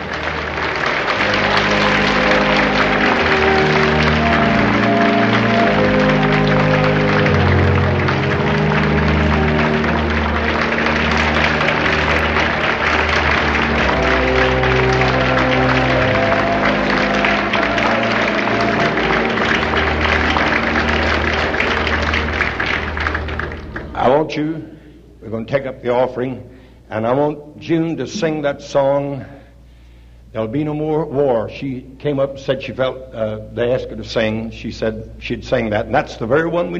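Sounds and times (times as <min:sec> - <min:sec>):
audience applause: 0:00.0 - 0:24.3
speech: 0:25.8 - 0:29.4, 0:30.3 - 0:36.7.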